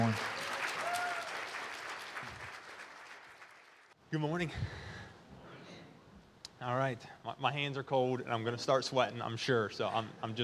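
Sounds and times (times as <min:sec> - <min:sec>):
audience applause: 0:00.0 - 0:04.0
speech: 0:04.1 - 0:04.9, 0:06.6 - 0:10.4.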